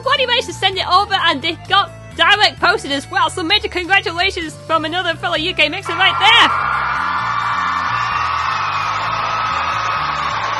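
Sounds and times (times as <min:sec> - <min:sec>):
speech: 0:00.2 - 0:06.8
crowd cheering and whooping: 0:05.9 - 0:10.5.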